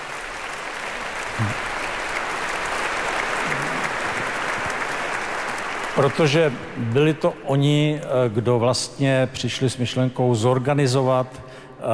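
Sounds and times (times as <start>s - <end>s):
crowd applause: 0.0s - 7.2s
speech: 6.0s - 11.9s.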